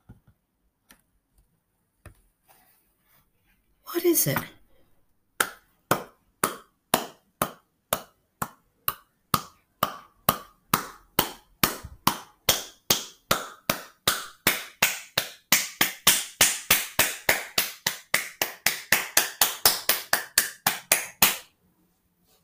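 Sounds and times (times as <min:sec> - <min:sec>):
speech: 0:04.0 - 0:04.5
hands clapping: 0:05.4 - 0:21.5.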